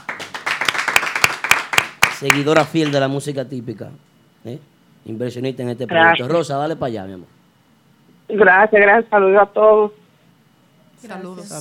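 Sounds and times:
applause: 0.0 - 3.1
speech: 2.2 - 7.4, 8.3 - 10.0, 11.0 - 11.5.

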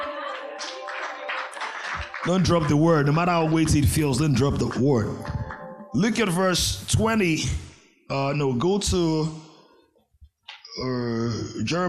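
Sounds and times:
crowd clapping: 0.0 - 6.1
speech: 2.2 - 5.4, 6.0 - 9.5, 10.8 - 11.8.

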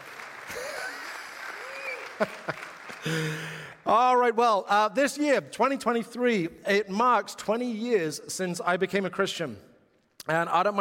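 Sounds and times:
audience applause: 0.0 - 3.8
speech: 2.2 - 9.7, 10.3 - 10.7.

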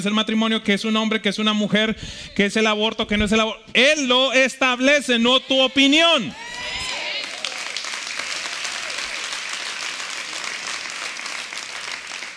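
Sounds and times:
speech: 0.0 - 6.8
audience applause: 6.3 - 12.3.

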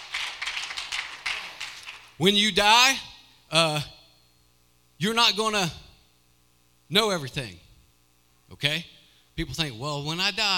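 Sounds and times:
audience clapping: 0.0 - 2.2
speech: 2.2 - 3.9, 5.0 - 5.8, 6.9 - 7.6, 8.5 - 10.5.

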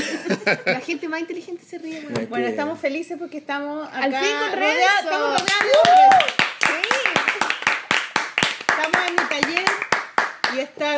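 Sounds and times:
laughter: 0.0 - 1.0
speech: 0.3 - 6.4, 8.8 - 9.8, 10.5 - 10.9
clapping: 5.4 - 10.7.

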